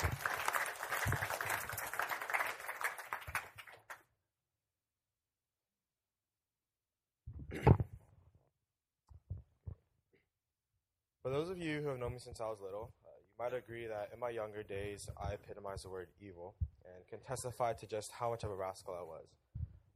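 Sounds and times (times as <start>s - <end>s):
audience applause at a church testimony event: 0.0s - 4.0s
speech: 11.5s - 19.5s.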